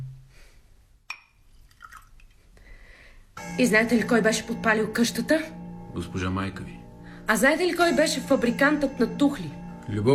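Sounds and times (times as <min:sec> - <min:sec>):
wine being poured into a glass: 0:01.6 - 0:02.3
speech: 0:03.6 - 0:10.1.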